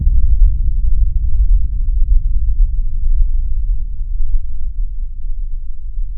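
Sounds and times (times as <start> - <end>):
very low synth bomb: 0.0 - 6.1.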